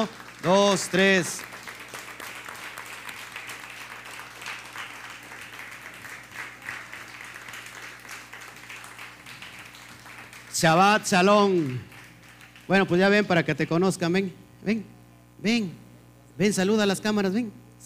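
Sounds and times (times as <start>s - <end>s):
speech: 0.0s - 1.5s, 10.6s - 11.9s, 12.7s - 15.8s, 16.4s - 17.6s
audience applause: 0.0s - 12.9s.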